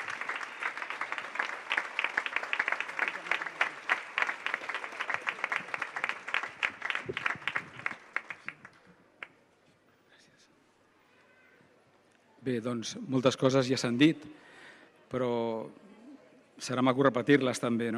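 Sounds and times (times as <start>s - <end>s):
audience applause: 0.0s - 8.8s
speech: 12.5s - 14.4s, 15.1s - 15.8s, 16.6s - 17.9s.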